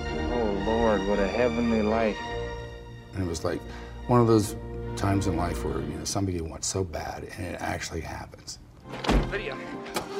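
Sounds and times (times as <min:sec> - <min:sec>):
speech: 0:00.7 - 0:02.4, 0:03.2 - 0:10.0
foot kicking a cab door: 0:08.9 - 0:09.4.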